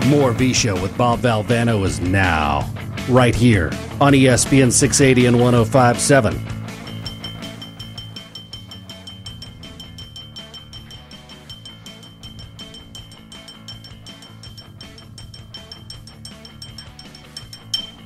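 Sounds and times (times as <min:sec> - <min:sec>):
speech: 0:00.1 - 0:06.6
pencil tapping on a drinking glass: 0:06.8 - 0:18.0.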